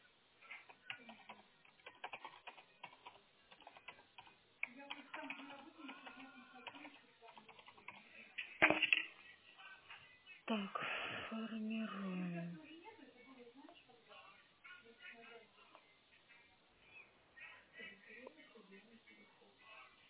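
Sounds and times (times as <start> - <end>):
typing a text in English on a keyboard: 0.6 - 9.1
speech: 10.5 - 12.6.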